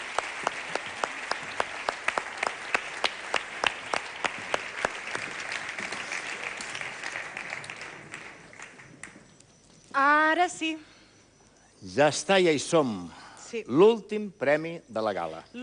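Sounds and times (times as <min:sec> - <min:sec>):
audience applause: 0:00.0 - 0:09.2
speech: 0:10.4 - 0:10.9, 0:11.8 - 0:15.6.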